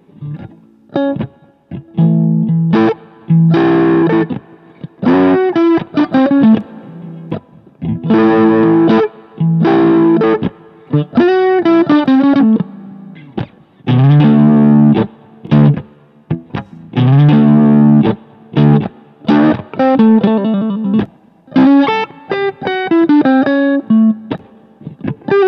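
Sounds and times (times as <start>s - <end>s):
blue Strat electric guitar: 0.0s - 25.4s.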